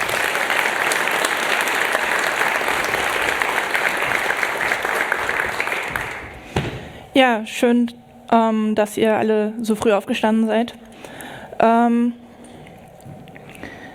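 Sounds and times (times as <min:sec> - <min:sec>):
audience applause: 0:00.0 - 0:06.5
speech: 0:07.2 - 0:10.8, 0:11.6 - 0:12.2.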